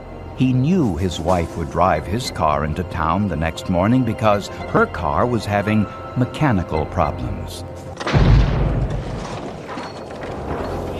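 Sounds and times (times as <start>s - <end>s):
speech: 0.4s - 8.3s
debris crackle: 7.9s - 10.9s
pipe bomb explosion boom: 8.1s - 9.4s.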